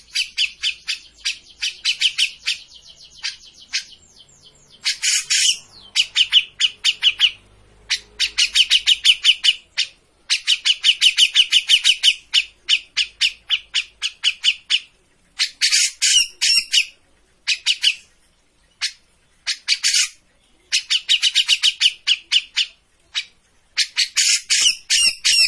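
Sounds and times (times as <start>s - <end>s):
Grey-cheeked bulbul chattering: 0.0s - 25.4s.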